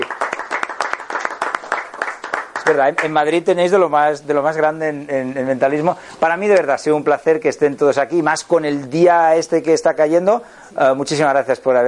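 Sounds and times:
audience applause: 0.0s - 3.2s
speech: 2.7s - 11.8s.

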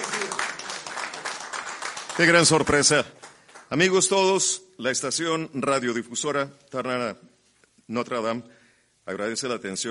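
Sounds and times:
audience applause: 0.0s - 3.7s
speech: 2.2s - 7.3s, 7.9s - 9.9s.

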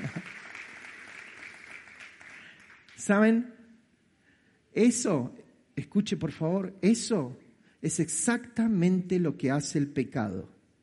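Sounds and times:
audience applause: 0.0s - 3.0s
speech: 3.0s - 3.6s, 4.8s - 10.6s.

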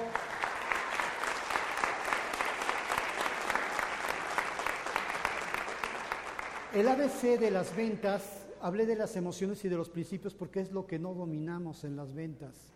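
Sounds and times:
audience applause: 0.0s - 7.8s
speech: 6.8s - 12.7s.

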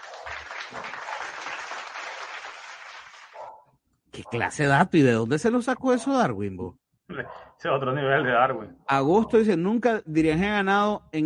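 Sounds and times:
audience applause: 0.0s - 3.4s
speech: 0.7s - 1.0s, 4.2s - 11.2s.

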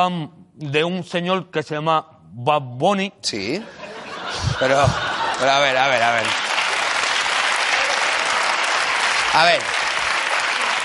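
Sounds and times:
speech: 0.0s - 6.4s, 9.3s - 9.8s
laughter: 3.6s - 6.9s
applause: 5.2s - 10.8s.

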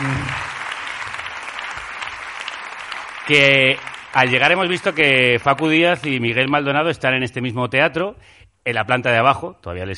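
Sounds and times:
theatre audience applauding a guest on a live show: 0.0s - 5.8s
speech: 3.3s - 9.9s.

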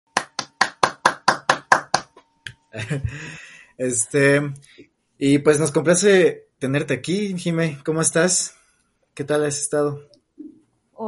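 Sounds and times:
hand claps: 0.1s - 3.3s
laughter: 2.8s - 3.5s
speech: 2.8s - 8.6s, 9.2s - 10.2s.

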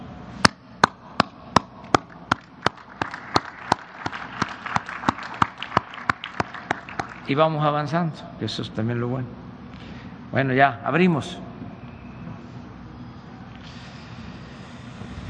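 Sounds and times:
rhythmic audience clapping: 0.8s - 7.7s
crowd noise: 2.7s - 7.4s
speech: 7.3s - 9.4s, 10.3s - 11.5s.

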